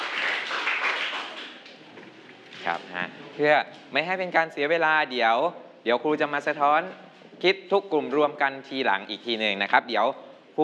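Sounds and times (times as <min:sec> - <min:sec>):
classroom applause: 0:00.0 - 0:01.8
speech: 0:02.6 - 0:10.6.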